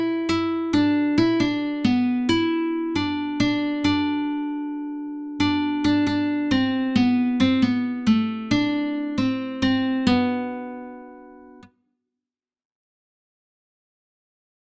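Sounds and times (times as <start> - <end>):
guitar: 0.0 - 11.8.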